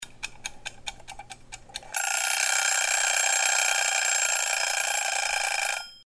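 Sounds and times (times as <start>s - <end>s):
clock: 0.0s - 6.0s.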